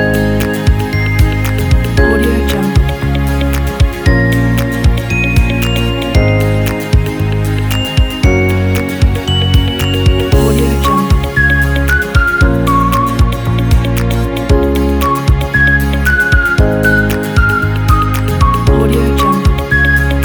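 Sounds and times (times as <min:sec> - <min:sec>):
guitar: 0:00.0 - 0:20.2
happy whistling: 0:10.8 - 0:13.5, 0:15.0 - 0:20.2.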